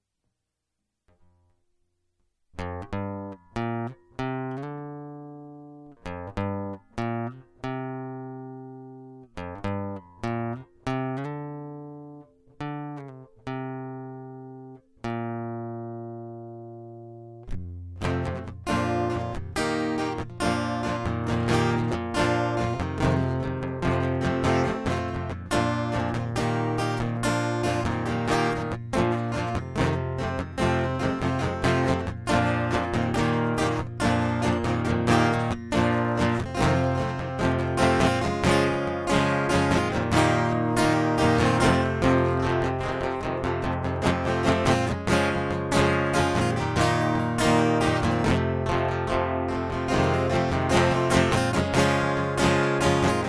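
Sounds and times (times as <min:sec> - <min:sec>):
guitar loop: 0:02.6 - 0:53.2.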